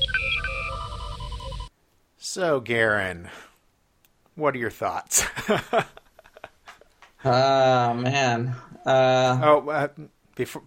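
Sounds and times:
electronic communicator hailing frequencies chirp: 0.0 - 1.7
warbling hum over a low rumble: 0.0 - 1.7
speech: 2.3 - 3.5, 4.4 - 6.0, 7.2 - 10.6.

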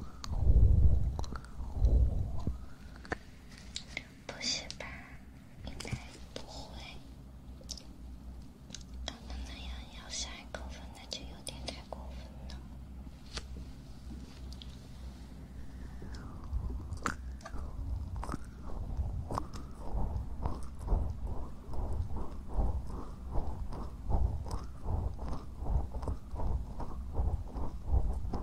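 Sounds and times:
steady low rumble: 0.0 - 28.4
ear cleaning and ear massage scratching and rubbing: 16.8 - 28.4.

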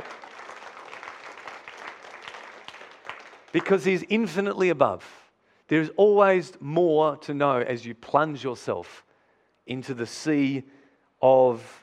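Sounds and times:
audience clapping: 0.0 - 4.4
speech: 3.5 - 11.8.

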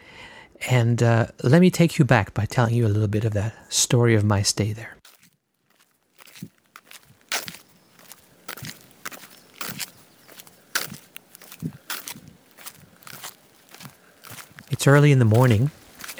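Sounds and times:
speech: 0.7 - 5.0, 14.8 - 16.1
footsteps walking along packed sandy roads in Montalivet, France: 5.0 - 16.1.

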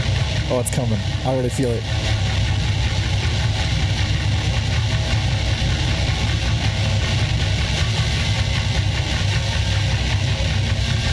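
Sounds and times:
chugging drum beat and riff: 0.0 - 11.1
speech: 0.5 - 2.2.

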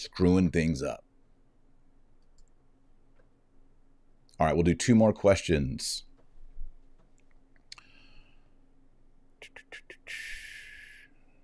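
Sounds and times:
speech: 0.0 - 1.1, 4.4 - 6.1
computer mouse clicking: 2.2 - 2.6.

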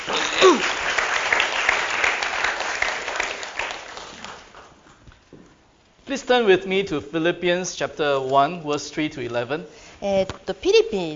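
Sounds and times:
audience applause: 0.0 - 4.7
speech: 6.1 - 11.1.

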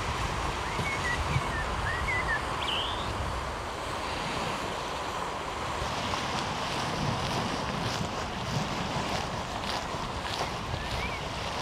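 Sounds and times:
waves washing along the Omø coastline: 0.0 - 11.6
birds chirping and calling: 0.6 - 3.2, 10.3 - 11.4.

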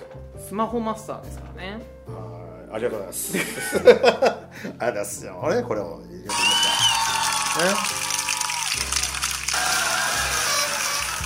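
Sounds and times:
speech: 0.5 - 2.0, 2.7 - 6.4, 7.6 - 8.0
laughter: 3.3 - 4.7
applause sound effect: 6.3 - 11.2
trumpet fanfare: 9.2 - 11.2.

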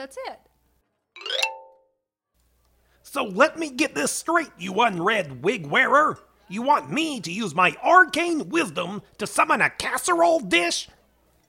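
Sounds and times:
speech: 0.0 - 0.5, 3.1 - 11.0
Spectral Bitter app push notification chime: 1.2 - 1.9.

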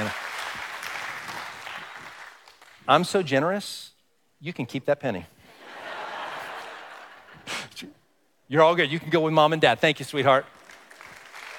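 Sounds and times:
audience applause: 0.0 - 2.8, 10.4 - 11.5
speech: 2.9 - 5.4, 8.5 - 10.6
laughter: 5.5 - 7.6.

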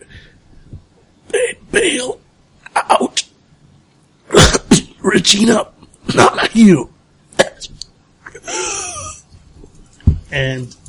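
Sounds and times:
speech: 1.8 - 2.2, 5.2 - 6.9, 10.3 - 10.8
faint coughing: 4.3 - 4.9.

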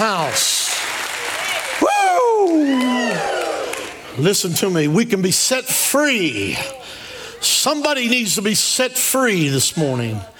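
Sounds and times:
audience clapping and cheering in praise: 0.0 - 4.2
loud voice with long falling drawn-out shout: 1.5 - 4.0
speech: 4.2 - 10.3.

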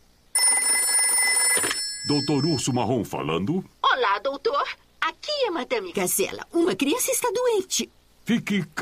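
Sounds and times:
telephone number being dialed: 0.4 - 2.7
speech: 2.1 - 8.8.

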